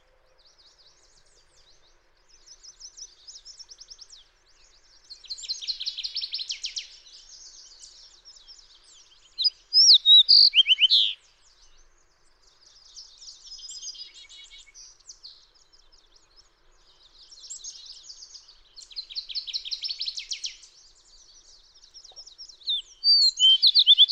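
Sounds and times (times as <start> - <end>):
fox sparrow singing: 0.0 - 24.1.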